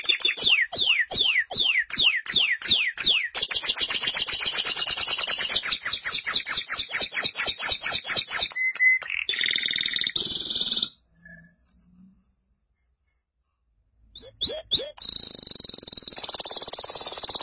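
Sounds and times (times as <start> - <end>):
canary chips and trills: 0.0 - 10.4, 14.2 - 17.4.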